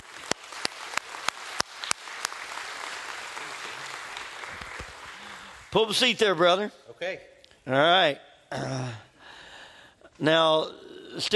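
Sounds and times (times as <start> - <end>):
audience applauding to welcome a guest professor: 0.0 - 6.0
speech: 5.7 - 9.1, 10.2 - 11.3.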